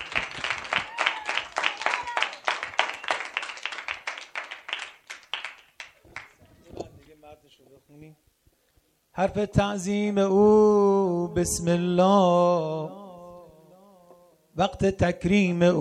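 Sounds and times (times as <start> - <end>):
audience clapping along: 0.0 - 7.1
speech: 8.0 - 8.3, 9.2 - 13.0, 14.6 - 15.8.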